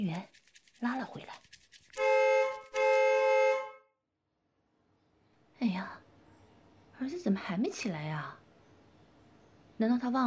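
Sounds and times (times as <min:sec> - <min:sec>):
speech: 0:00.0 - 0:01.5, 0:07.1 - 0:08.4, 0:09.8 - 0:10.2
car horn honking outside a window: 0:02.0 - 0:03.9.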